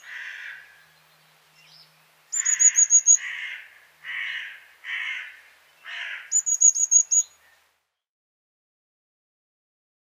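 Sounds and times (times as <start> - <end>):
Eurasian blue tit calling: 0.0 - 7.6.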